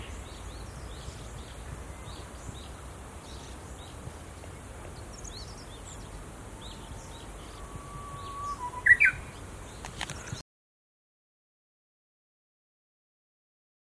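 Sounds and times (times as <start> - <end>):
uguisu: 0.0 - 10.4.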